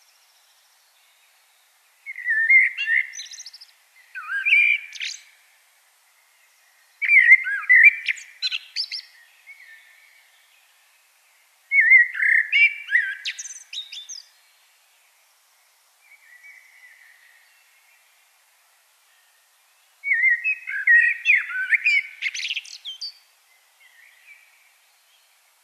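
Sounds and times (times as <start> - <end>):
common blackbird singing: 2.0 - 5.4, 6.5 - 10.6, 11.7 - 14.4, 20.0 - 25.3.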